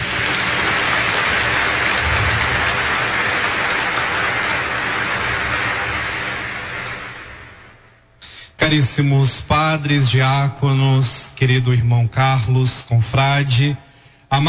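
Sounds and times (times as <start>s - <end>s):
applause: 0.0s - 7.9s
speech: 8.7s - 14.4s.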